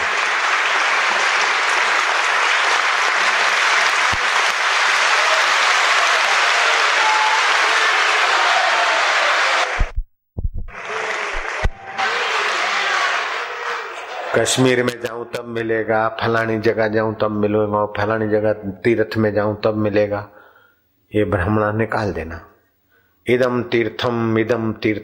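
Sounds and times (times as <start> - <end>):
large audience applause: 0.0 - 9.9, 10.7 - 14.8
speech: 14.4 - 20.4, 21.1 - 22.5, 23.2 - 25.0.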